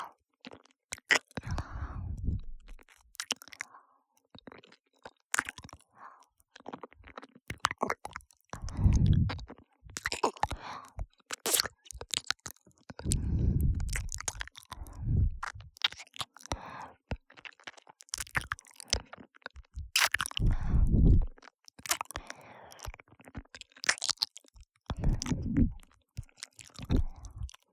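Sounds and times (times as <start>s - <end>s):
ear licking sounds on the left: 1.0s - 2.9s, 7.1s - 12.4s, 13.0s - 16.6s, 17.6s - 27.7s.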